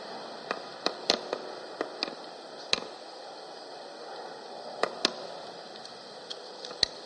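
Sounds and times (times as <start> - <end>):
tinder crackling as it catches: 0.0 - 7.0.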